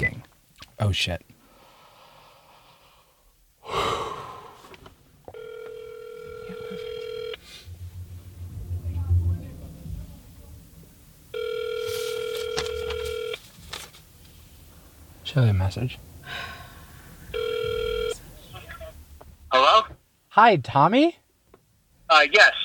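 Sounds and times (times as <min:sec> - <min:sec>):
speech: 0:00.8 - 0:01.3, 0:15.4 - 0:16.5, 0:20.4 - 0:21.2, 0:22.2 - 0:22.6
sharp breath: 0:01.4 - 0:04.8, 0:07.4 - 0:07.8, 0:16.2 - 0:17.3
low murmur: 0:04.6 - 0:19.5
phone line ringing with steady electronic rings: 0:05.3 - 0:07.4, 0:11.3 - 0:13.4, 0:17.3 - 0:18.2.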